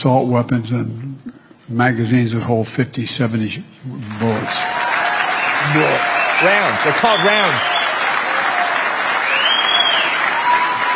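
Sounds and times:
speech: 0.0 - 4.9, 5.6 - 7.8
audience of women applauding: 4.0 - 10.9.

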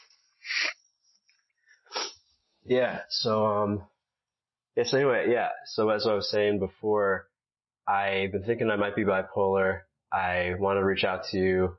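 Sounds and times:
person blowing nose: 1.8 - 2.2
speech: 2.6 - 3.9, 4.8 - 7.3, 7.9 - 11.7.

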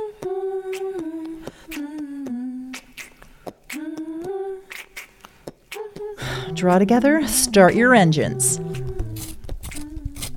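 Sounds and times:
speech: 6.6 - 8.8
pencil sharpener sharpening a pencil: 9.2 - 10.3.

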